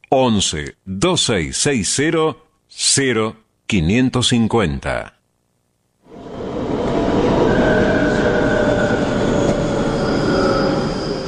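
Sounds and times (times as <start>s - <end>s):
speech: 0.1s - 5.2s
subway train rolling into a station: 6.1s - 11.2s
thin high subway train wheel squeals: 7.2s - 11.2s.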